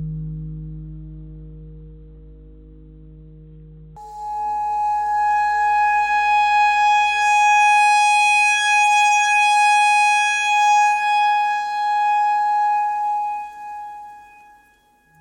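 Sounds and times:
simple clarinet notes in E: 0:04.0 - 0:15.1.

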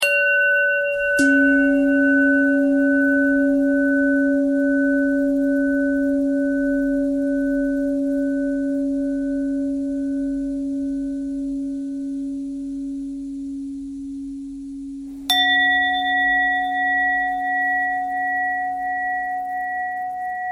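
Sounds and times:
bell: 0:00.0 - 0:13.4, 0:15.1 - 0:20.5.

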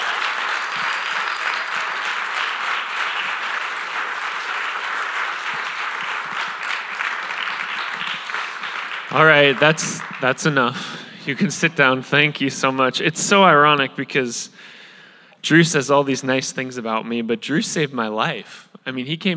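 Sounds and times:
audience standing ovation applause: 0:00.0 - 0:11.5
speech: 0:09.1 - 0:14.8, 0:15.4 - 0:19.3.

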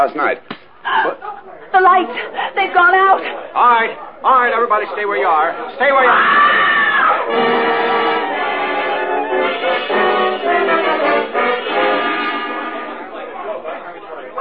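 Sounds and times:
speech: 0:00.0 - 0:06.7
agitated crowd shouting: 0:05.8 - 0:13.4
high-pitched scream: 0:06.0 - 0:10.4.

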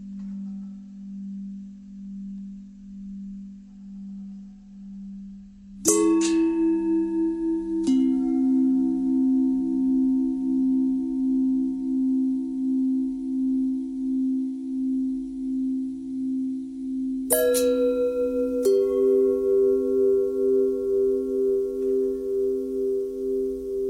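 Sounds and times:
long pentatonic bells: 0:05.8 - 0:23.8.

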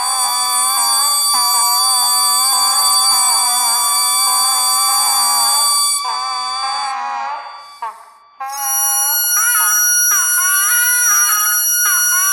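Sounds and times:
bagpipe: 0:00.0 - 0:12.3.

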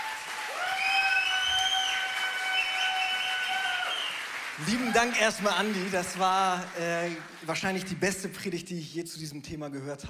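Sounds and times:
audience applause: 0:00.0 - 0:08.1
loud sustained high whistle: 0:00.6 - 0:04.3
speech: 0:04.6 - 0:10.0.

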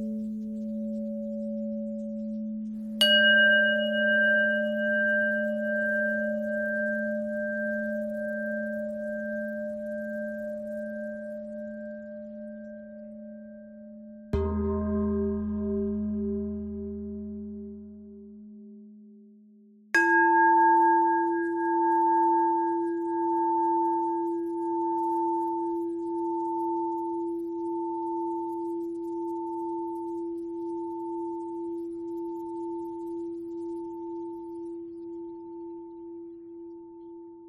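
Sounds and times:
bells bendtwist: 0:00.0 - 0:19.2, 0:20.0 - 0:37.4.

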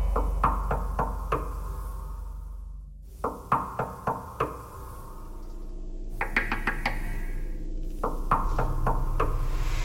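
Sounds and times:
knocking thread noise: 0:00.1 - 0:02.0, 0:03.2 - 0:05.1, 0:06.2 - 0:09.7.

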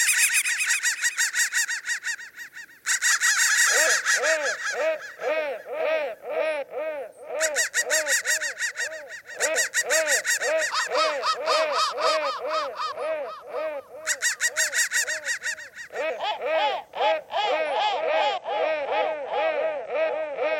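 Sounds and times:
crow cawing: 0:00.0 - 0:20.5.

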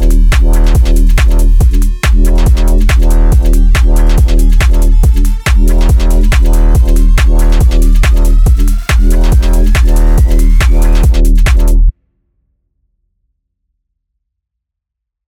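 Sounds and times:
UK bassline music: 0:00.0 - 0:11.9.

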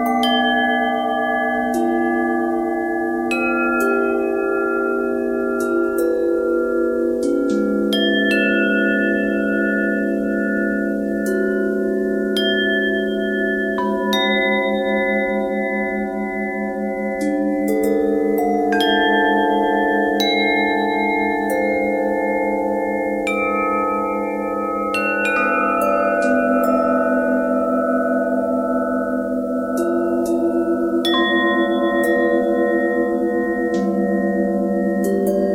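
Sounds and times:
bell with bent and twisted pitch: 0:00.0 - 0:35.5.

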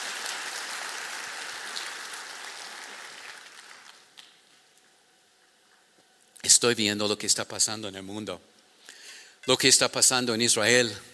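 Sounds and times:
audience applauding loudly: 0:00.0 - 0:04.4
speech: 0:06.5 - 0:08.6, 0:09.5 - 0:11.1.

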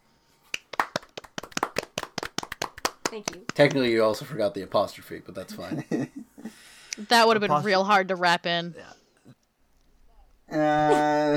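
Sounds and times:
people clapping: 0:00.5 - 0:04.3
speech: 0:03.1 - 0:06.2, 0:07.0 - 0:09.0, 0:10.5 - 0:11.3.

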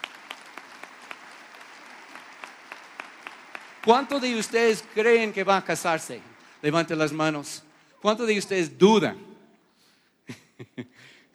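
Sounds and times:
audience applause: 0:00.0 - 0:07.4
speech: 0:03.8 - 0:09.3.

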